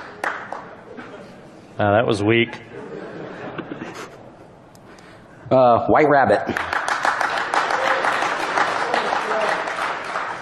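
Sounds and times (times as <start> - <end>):
audience clapping: 0.0 - 0.8, 6.5 - 10.4
laughter: 0.8 - 1.5, 2.7 - 4.4
speech: 1.8 - 2.8, 5.5 - 6.7.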